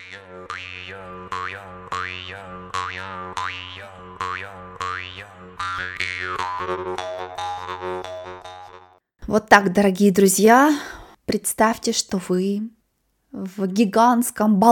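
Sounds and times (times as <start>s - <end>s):
khomus jaw harp being played: 0.0s - 9.0s
speech: 9.3s - 14.6s.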